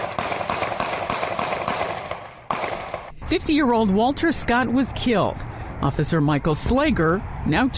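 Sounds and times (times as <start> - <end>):
gunshots from a police officer's gun: 0.0 - 3.1
speech: 3.3 - 7.7.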